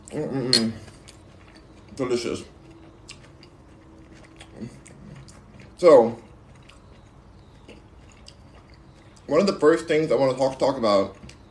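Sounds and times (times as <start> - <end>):
chewing spicy food seasoned with cayenne pepper: 0.0 - 11.5
low steady hum: 0.0 - 11.5
speech: 0.1 - 0.9, 2.0 - 2.6, 5.8 - 6.2, 9.3 - 11.2.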